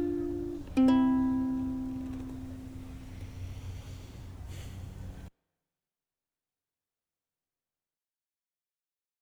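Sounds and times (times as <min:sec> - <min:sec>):
ukulele: 0:00.0 - 0:04.8.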